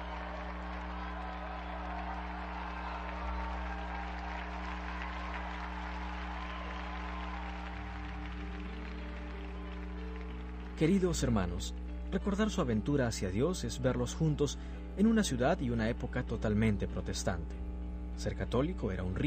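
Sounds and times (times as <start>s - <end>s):
audience applause: 0.0s - 11.5s
low droning tones: 0.0s - 19.2s
speech: 10.8s - 19.2s.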